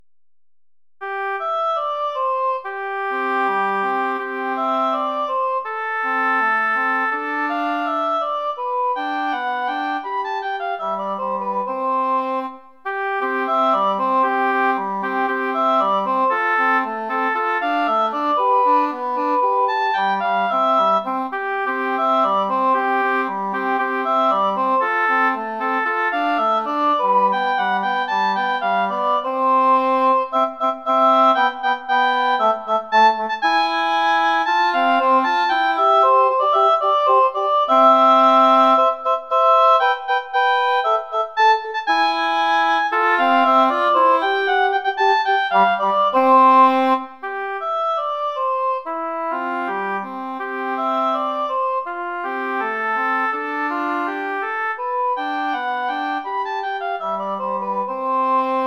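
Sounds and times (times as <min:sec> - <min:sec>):
Christmas song: 0:01.0 - 0:58.6.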